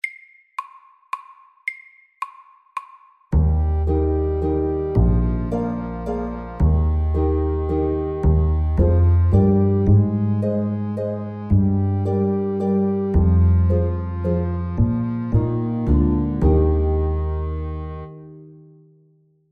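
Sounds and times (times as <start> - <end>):
fast summer waltz: 3.4 - 18.2.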